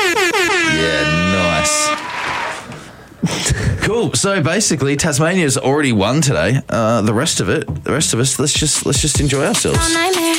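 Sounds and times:
air horn blaring: 0.0 - 2.7
speech: 4.0 - 10.3.

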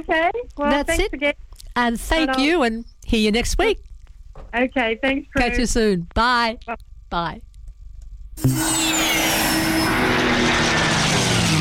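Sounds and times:
speech: 0.0 - 7.5, 8.4 - 9.0
propeller aircraft engine roar at the Barrington Coast Air Show: 8.4 - 11.5.

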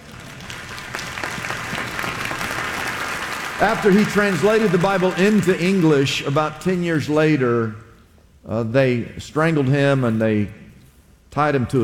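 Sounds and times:
crowd applause: 0.0 - 6.7
speech: 3.6 - 7.8, 8.4 - 10.6, 11.3 - 11.8.

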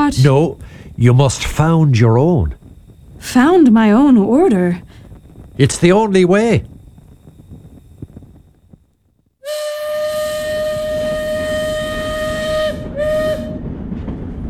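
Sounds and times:
steam train whistle: 0.0 - 1.6, 9.4 - 14.2
steam train chugging: 0.0 - 8.8, 9.4 - 14.4
speech: 0.1 - 2.6, 3.2 - 4.9, 5.6 - 6.7.

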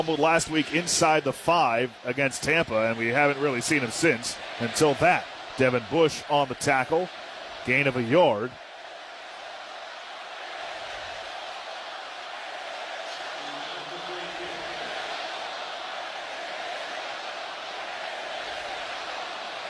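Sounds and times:
speech: 0.0 - 8.6
stadium crowd roar: 0.0 - 19.6.

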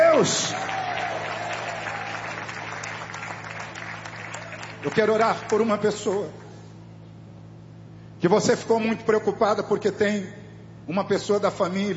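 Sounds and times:
audience applause: 0.0 - 5.8
speech: 0.2 - 0.7, 4.8 - 6.4, 8.2 - 11.9.

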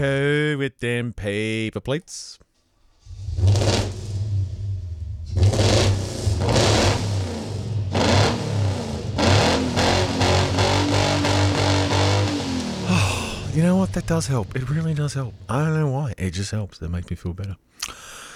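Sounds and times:
speech: 0.0 - 2.4, 3.4 - 4.0, 13.6 - 18.1
car drivetrain revving: 3.0 - 15.5.

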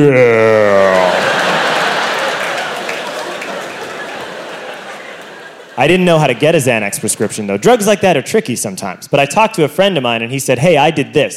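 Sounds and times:
speech: 0.0 - 0.5, 5.8 - 11.3
laughter: 0.0 - 7.6
muted audience applause: 0.7 - 6.6.

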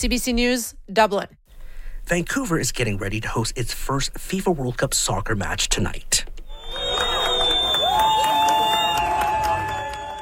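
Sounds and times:
speech: 0.0 - 1.4, 2.1 - 6.3
soccer fans cheering and shouting: 6.5 - 10.2
sustained whistle-like or horn-like tones: 6.5 - 10.2.

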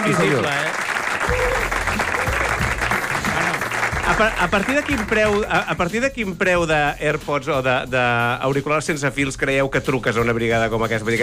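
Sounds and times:
speech: 0.0 - 1.6, 4.1 - 11.2
audience applause: 0.0 - 5.6.

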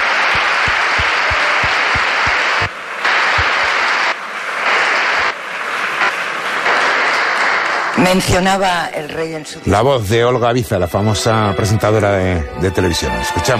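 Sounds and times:
audience applause for the king: 0.0 - 8.3
speech: 8.0 - 13.5.

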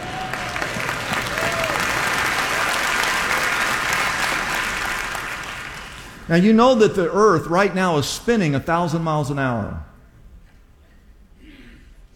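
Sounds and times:
loud audience applause: 0.0 - 6.2
speech: 6.3 - 9.9.

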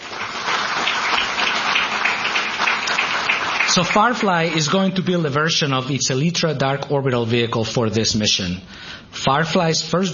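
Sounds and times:
audience applause: 0.0 - 4.6
speech: 3.7 - 10.1.

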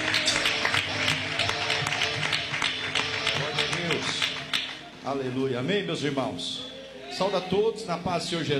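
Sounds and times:
church congregation clapping: 0.0 - 4.9
speech: 5.0 - 8.5.

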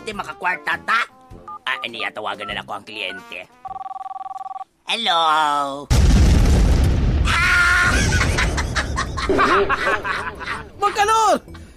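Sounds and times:
speech: 0.1 - 1.1, 1.8 - 3.8, 4.9 - 6.0, 9.3 - 11.5
mobile phone exploding: 5.9 - 9.3
laughter: 7.8 - 11.0.

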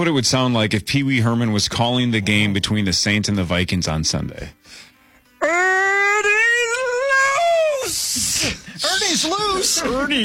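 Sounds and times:
speech: 0.0 - 4.8, 8.4 - 10.2
voice doing a bird impression: 5.4 - 8.5.

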